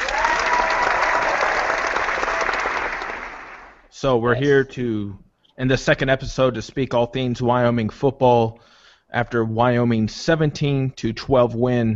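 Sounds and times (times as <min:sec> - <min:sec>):
crowd cheering and applause: 0:00.0 - 0:03.8
speech: 0:04.0 - 0:11.9.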